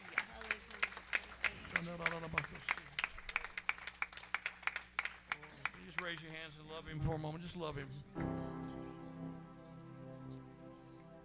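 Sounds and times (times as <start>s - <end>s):
crowd clapping hands in praise: 0.0s - 6.8s
speech: 1.8s - 2.9s, 5.8s - 9.0s.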